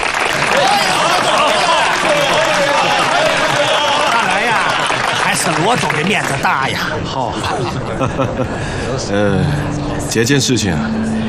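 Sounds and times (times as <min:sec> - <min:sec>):
applause: 0:00.0 - 0:06.9
laughter: 0:00.4 - 0:09.7
speech: 0:05.5 - 0:11.2.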